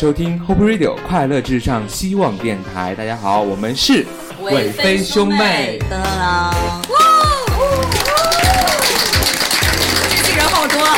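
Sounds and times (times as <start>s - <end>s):
speech: 0.0s - 7.1s
live audience clapping: 6.8s - 10.9s.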